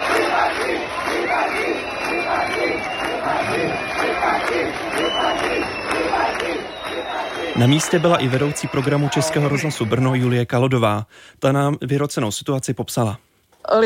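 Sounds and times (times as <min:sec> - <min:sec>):
crowd whistling in protest: 0:00.0 - 0:10.4
speech: 0:07.6 - 0:13.8.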